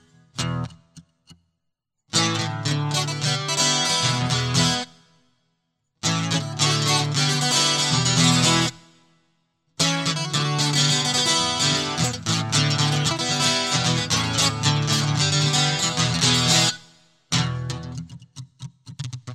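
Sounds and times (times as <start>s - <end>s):
high speed guitar loop: 2.1s - 4.9s, 6.0s - 8.8s, 9.8s - 18.2s.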